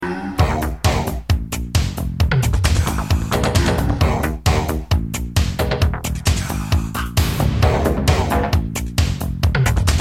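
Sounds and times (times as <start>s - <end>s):
classic eighties movie music: 0.0s - 9.9s.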